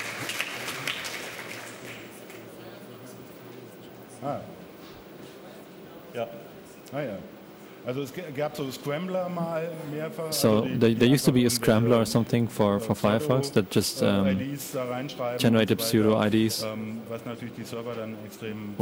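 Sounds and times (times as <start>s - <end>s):
audience applause: 0.0s - 2.6s
speech: 4.2s - 4.6s, 6.1s - 18.8s.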